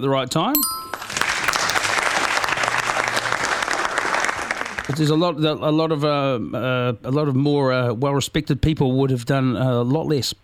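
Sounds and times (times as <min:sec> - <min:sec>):
speech: 0:00.0 - 0:00.9, 0:04.9 - 0:10.4
audience applause: 0:01.0 - 0:05.0.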